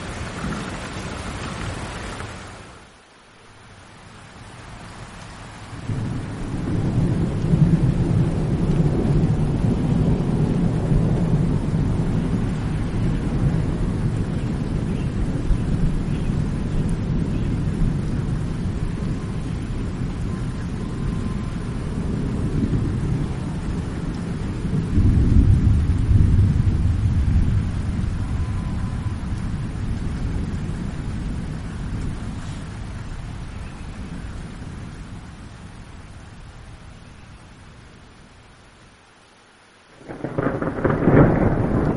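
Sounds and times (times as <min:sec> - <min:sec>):
steady hiss of rain: 0:00.0 - 0:41.9
deep rolling thunder in a heavy thunderstorm: 0:05.7 - 0:35.4, 0:40.0 - 0:41.9.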